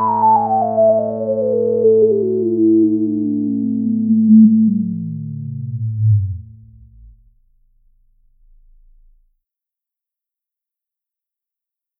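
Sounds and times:
iMini jazz synth bass with resonant filter: 0:00.1 - 0:09.3.

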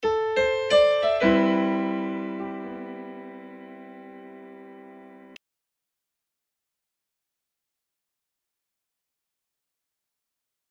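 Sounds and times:
piano at 90 BPM: 0:00.0 - 0:05.4.

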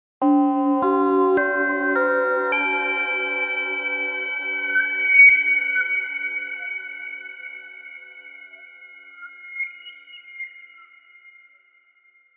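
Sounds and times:
Korg Prophecy VST comb-filtered waterphone: 0:00.2 - 0:12.3.

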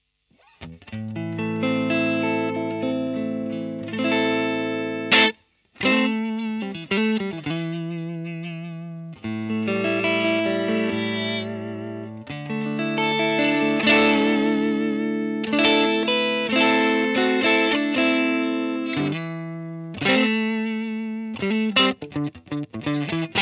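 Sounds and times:
Fender Blues LTD electric guitar: 0:00.4 - 0:23.4.

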